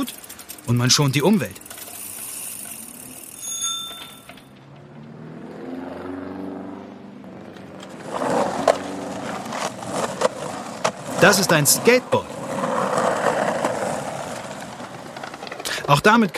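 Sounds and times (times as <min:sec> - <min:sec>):
speech: 0:00.0 - 0:01.6, 0:11.2 - 0:12.4, 0:15.9 - 0:16.3
bicycle bell ringing: 0:00.0 - 0:04.6
bicycle chain rattling: 0:00.0 - 0:04.9, 0:08.9 - 0:16.3
bicycle rolling past with whirring tyres: 0:00.0 - 0:16.3.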